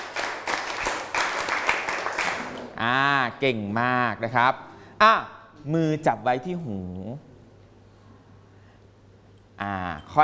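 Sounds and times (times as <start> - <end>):
children clapping hands in rhythm: 0.0 - 2.7
speech: 2.8 - 7.3, 9.6 - 10.2.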